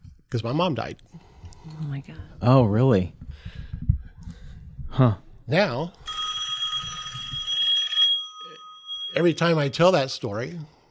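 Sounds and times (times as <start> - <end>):
speech: 0.3 - 3.6, 4.9 - 6.1, 9.2 - 10.8
telephone bell ringing with a bright metallic trill: 6.0 - 9.6.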